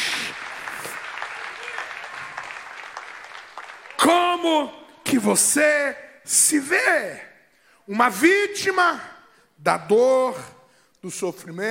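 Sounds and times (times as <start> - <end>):
audience applause: 0.0 - 4.7
speech: 4.1 - 7.3, 7.9 - 11.6.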